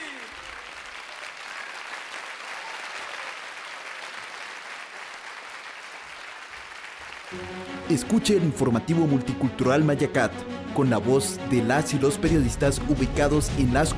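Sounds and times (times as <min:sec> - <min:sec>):
audience applause: 0:00.0 - 0:08.0
speech: 0:07.3 - 0:13.9.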